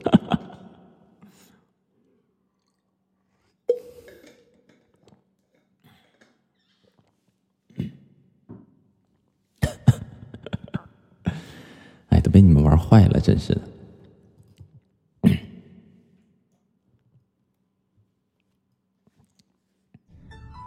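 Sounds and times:
singer clearing the throat mid-song: 7.7s - 8.1s, 9.6s - 11.5s, 15.2s - 16.0s
singer coughing mid-song: 9.6s - 11.6s, 15.2s - 15.6s
speech: 12.4s - 13.7s.

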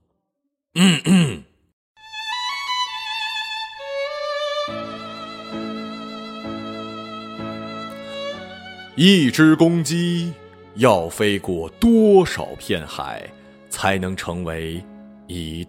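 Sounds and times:
speech: 0.8s - 1.5s, 9.0s - 15.6s
throat clearing: 0.8s - 1.6s.

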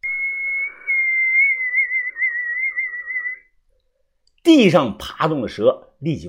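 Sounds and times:
whistle blown in darkness: 0.0s - 3.5s
speech: 4.5s - 6.2s.

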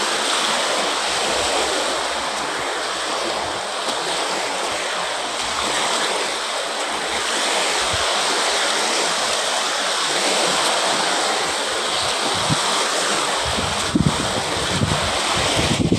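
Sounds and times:
ocean waves: 0.0s - 15.9s
wind: 0.0s - 15.9s.

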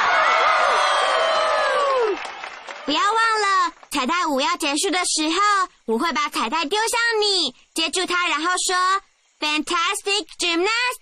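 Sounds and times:
crowd cheering and applauding: 0.0s - 3.0s
high whooping voices: 0.0s - 3.6s
speech: 2.9s - 3.1s, 4.0s - 11.0s.

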